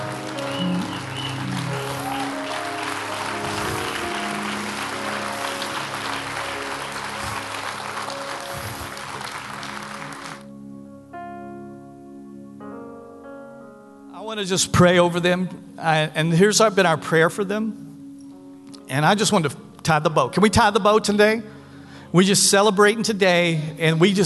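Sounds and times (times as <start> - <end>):
audience applause: 0.0 - 10.5
speech: 14.4 - 17.8, 18.9 - 24.2.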